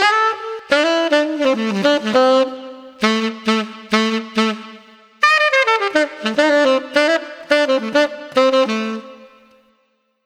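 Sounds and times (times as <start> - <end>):
exuberant street saxophone: 0.0 - 9.8.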